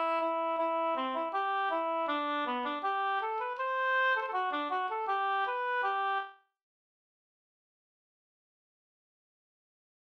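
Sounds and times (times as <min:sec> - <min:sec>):
folk tune in G major: 0:00.0 - 0:06.3.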